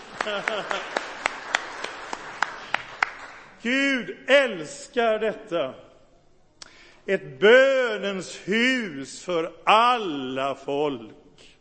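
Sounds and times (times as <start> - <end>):
laughter: 0.0 - 1.6
audience applause: 0.0 - 3.5
speech: 0.2 - 1.1, 3.6 - 5.9, 7.1 - 11.2.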